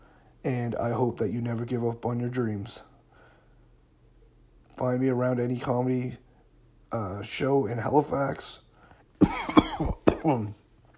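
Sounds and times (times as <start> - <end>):
speech: 0.4 - 2.9, 4.8 - 6.2, 6.9 - 8.6, 9.2 - 10.6
person coughing after choking while speaking: 9.2 - 10.6.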